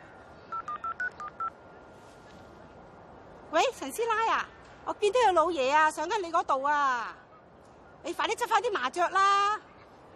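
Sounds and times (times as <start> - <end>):
phone keypad touch-tone beeps dialing a number: 0.5 - 1.5
speech: 3.5 - 7.2, 8.0 - 9.7.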